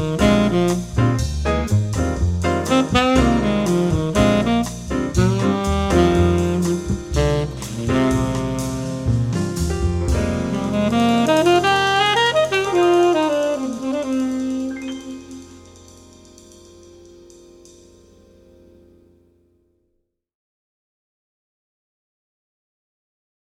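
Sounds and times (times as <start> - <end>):
bossa nova trumpet: 0.0 - 16.9.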